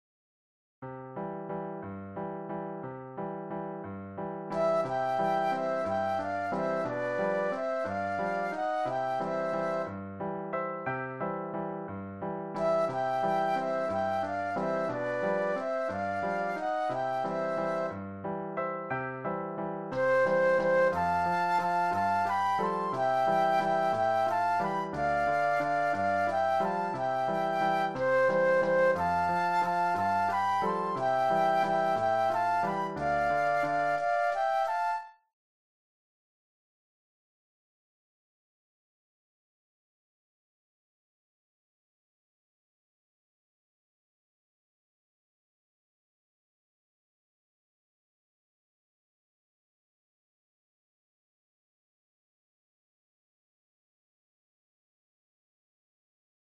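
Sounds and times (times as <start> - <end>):
piano: 0.8 - 35.3
flute duet: 4.5 - 10.4, 12.6 - 18.0, 19.9 - 35.3.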